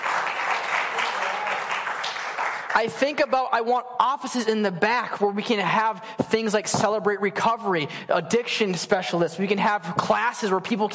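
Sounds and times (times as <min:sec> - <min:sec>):
audience applause: 0:00.0 - 0:03.0
speech: 0:02.8 - 0:10.9.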